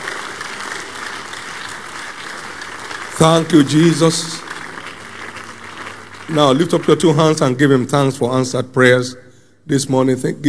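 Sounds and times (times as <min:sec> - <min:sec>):
audience clapping: 0:00.0 - 0:08.0
speech: 0:03.2 - 0:04.5, 0:06.3 - 0:10.4.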